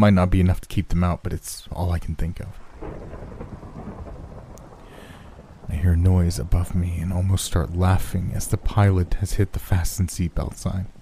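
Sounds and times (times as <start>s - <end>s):
speech: 0.0s - 3.0s, 5.7s - 11.0s
steady rain: 0.0s - 11.0s
low rolling rumble of thunder: 2.5s - 11.0s.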